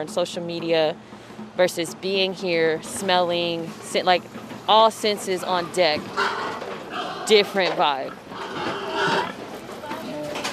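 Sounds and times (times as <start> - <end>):
speech: 0.0 - 6.4, 7.3 - 8.3
steady noisy background: 0.0 - 10.5
alarmed pigs of about 250 pounds grunting and shuffling in a truck: 3.7 - 10.5.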